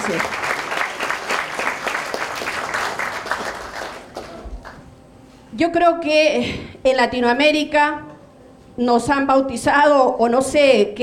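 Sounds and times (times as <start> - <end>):
audience applause: 0.0 - 4.8
speech: 0.1 - 0.5, 5.6 - 8.1, 8.8 - 11.0.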